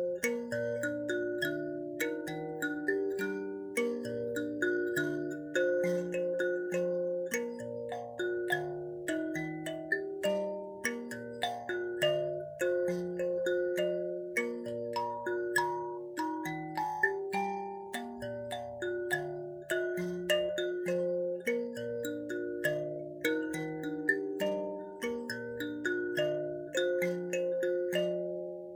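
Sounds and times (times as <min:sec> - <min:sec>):
mbira: 0:00.0 - 0:28.7.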